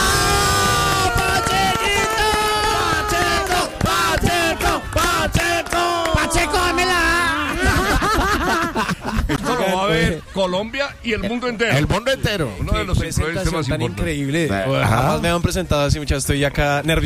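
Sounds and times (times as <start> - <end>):
enthusiastic cheering and shouting voices: 0.0 - 8.6
loud audience applause: 0.0 - 8.7
laughter: 4.6 - 10.7
speech: 10.4 - 17.0.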